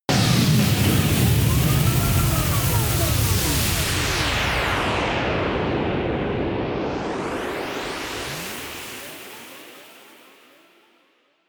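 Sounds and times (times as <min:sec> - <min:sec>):
storm vortex drones: 0:00.1 - 0:09.3.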